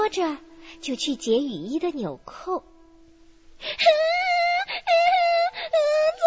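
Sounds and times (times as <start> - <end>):
speech: 0.1 - 2.7, 3.6 - 4.0
person wailing in sobbing cries: 3.7 - 6.1.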